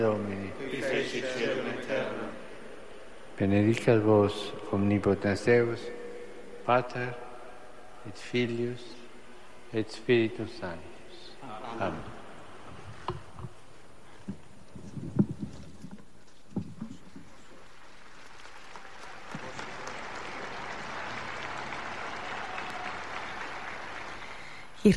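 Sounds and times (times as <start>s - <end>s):
speech: 0.0s - 2.1s, 3.4s - 6.0s, 6.7s - 7.2s, 8.0s - 9.0s, 9.7s - 10.9s, 11.5s - 12.1s
applause in church: 17.4s - 24.8s.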